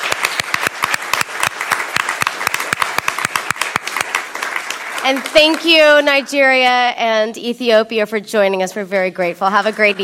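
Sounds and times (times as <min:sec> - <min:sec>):
audience applause for panelists: 0:00.0 - 0:06.3
speech: 0:05.1 - 0:10.0.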